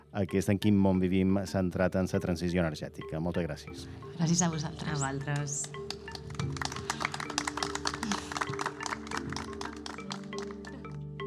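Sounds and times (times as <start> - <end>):
speech: 0.1 - 6.7
audience applause: 5.6 - 11.0.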